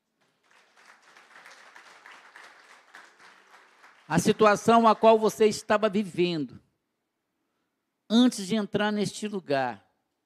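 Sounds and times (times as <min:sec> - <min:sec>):
audience applauding: 0:00.2 - 0:05.6
speech: 0:04.1 - 0:06.6, 0:08.1 - 0:09.8.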